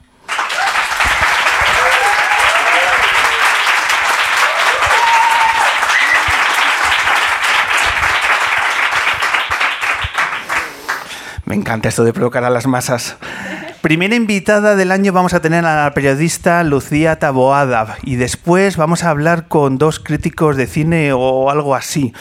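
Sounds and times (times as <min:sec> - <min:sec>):
live audience applause: 0:00.2 - 0:11.1
speech: 0:11.5 - 0:22.2.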